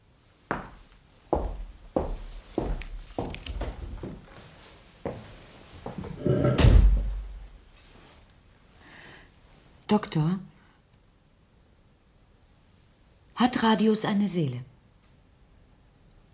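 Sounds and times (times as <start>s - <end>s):
heavy footsteps walking away: 0.5s - 7.6s
door slamming: 6.4s - 7.4s
speech: 9.9s - 10.5s, 13.4s - 14.7s.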